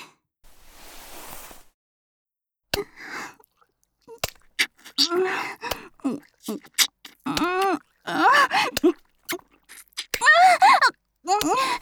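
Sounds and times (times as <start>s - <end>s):
long gentle kiss: 2.8s - 3.0s, 4.1s - 11.6s.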